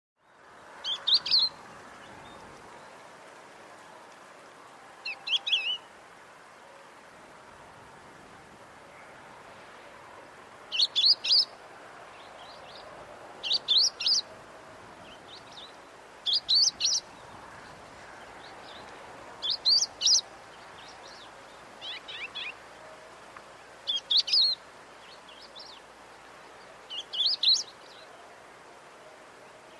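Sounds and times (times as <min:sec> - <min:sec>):
steady hiss: 0:00.2 - 0:29.7
bird calling with high sharp chirps: 0:00.8 - 0:02.9, 0:10.7 - 0:11.5, 0:12.2 - 0:14.3, 0:15.1 - 0:23.0, 0:23.9 - 0:28.2.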